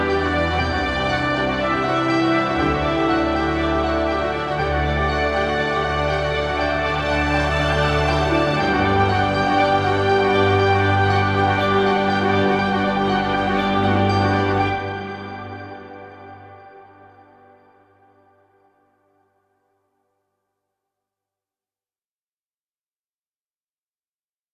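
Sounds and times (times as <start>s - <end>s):
thriving ambient music: 0.0s - 19.2s.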